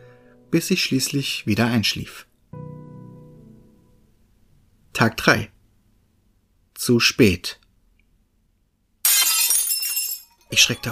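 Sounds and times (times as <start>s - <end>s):
speech: 0.5s - 2.3s, 5.0s - 5.6s, 6.8s - 7.6s, 10.5s - 10.9s
glass pane shattering: 9.0s - 10.9s.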